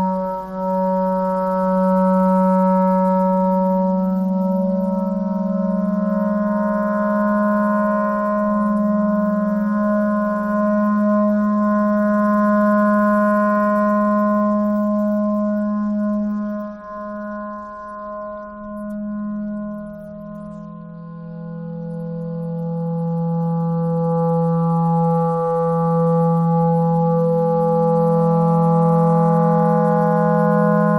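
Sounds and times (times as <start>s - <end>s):
clarinet: 0.0s - 30.9s.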